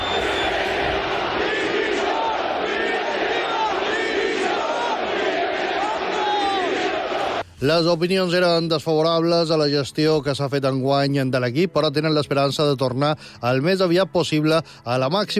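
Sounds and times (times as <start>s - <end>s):
Mallorca football fans chanting for board's resignation: 0.0s - 7.4s
speech: 7.6s - 15.3s.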